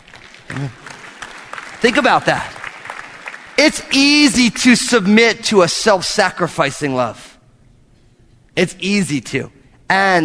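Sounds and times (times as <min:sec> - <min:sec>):
audience clapping: 0:00.0 - 0:04.6
speech: 0:01.8 - 0:02.6, 0:03.6 - 0:07.3, 0:08.6 - 0:10.2.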